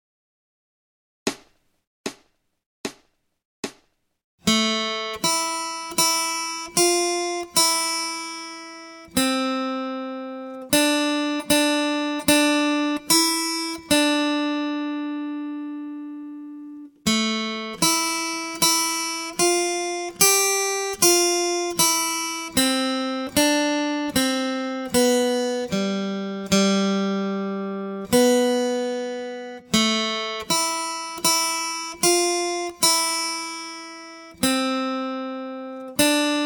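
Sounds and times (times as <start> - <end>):
acoustic guitar accompaniment: 4.4 - 36.4.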